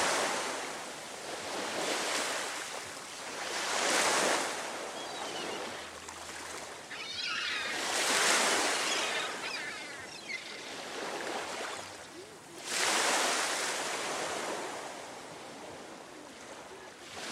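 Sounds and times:
ocean waves: 0.0 - 17.3.

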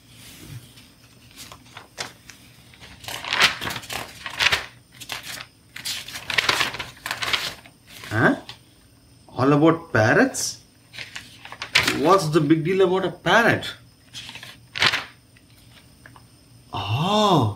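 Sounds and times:
paper pamphlets being handled and crinkled: 1.0 - 8.6, 10.9 - 12.5, 14.1 - 15.2
speech: 9.4 - 10.6, 12.0 - 13.8.

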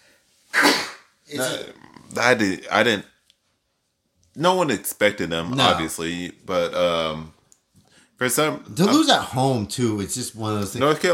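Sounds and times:
sneezes: 0.5 - 1.5
speech: 1.3 - 3.1, 4.4 - 7.4, 8.2 - 11.1.

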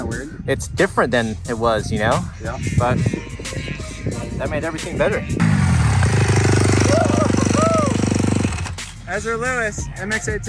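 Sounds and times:
speech: 0.0 - 5.7, 9.1 - 10.4
motocross factory race bike engine idling: 5.4 - 8.8.

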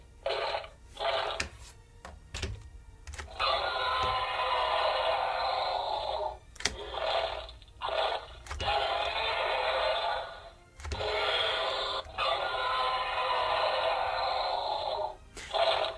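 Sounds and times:
electronic toy dinosaur roars and growls: 0.2 - 1.4, 3.3 - 15.9
mechanical clicks and crunching snaps: 1.4 - 3.4, 6.5 - 6.8, 8.4 - 9.2, 10.7 - 11.0.

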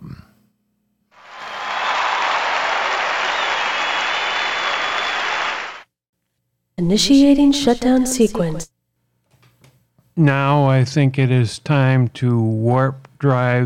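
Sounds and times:
round of applause: 1.2 - 5.9
speech: 6.8 - 8.8, 10.2 - 13.6.

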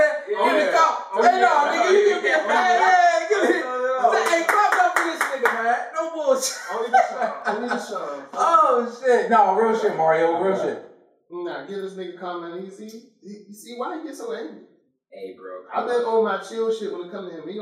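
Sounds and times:
laughter: 0.3 - 9.7
speech: 1.2 - 3.8, 6.4 - 17.5
people clapping hands: 2.4 - 5.8.

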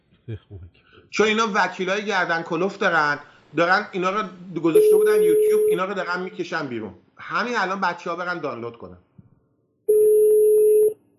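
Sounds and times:
speech: 0.3 - 9.1
telephone ringing on a call: 4.8 - 5.9, 9.9 - 11.0.

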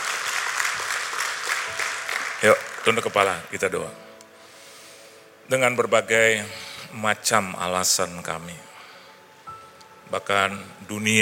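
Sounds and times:
audience applause: 0.0 - 3.8
speech: 2.4 - 4.0, 5.5 - 8.7, 10.1 - 11.2.

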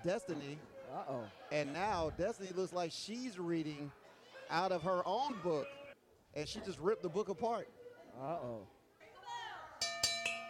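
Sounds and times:
speech: 0.0 - 8.8
match bell ringing: 9.8 - 10.4.

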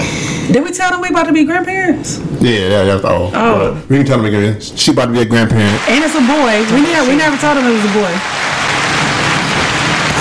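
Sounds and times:
speech: 0.5 - 8.8
applause sound effect: 5.6 - 10.1.

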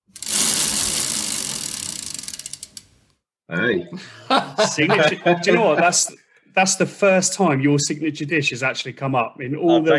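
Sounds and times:
prize wheel ratchet and pawl clicking on a cooking show: 0.0 - 3.0
speech: 3.5 - 9.9
laughter: 3.8 - 6.2.

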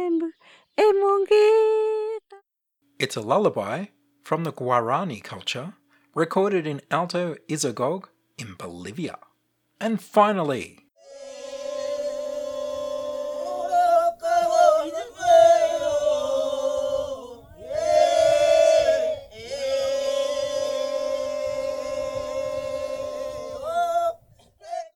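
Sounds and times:
speech: 0.1 - 1.8, 3.0 - 10.8
Lardil healing song from Mornington Island: 11.0 - 24.9.

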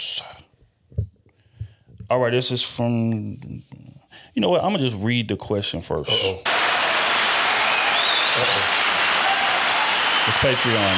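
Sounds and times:
speech: 2.1 - 6.6, 10.3 - 10.9
people clapping: 6.5 - 10.9.

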